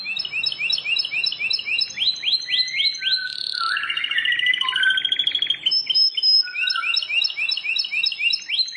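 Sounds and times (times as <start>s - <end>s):
Plain Prinia song: 0.0s - 8.6s.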